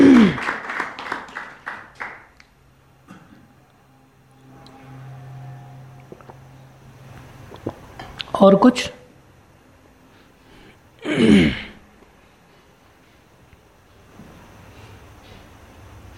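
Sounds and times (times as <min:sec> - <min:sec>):
audience clapping: 0:00.0 - 0:02.6
speech: 0:08.4 - 0:09.0.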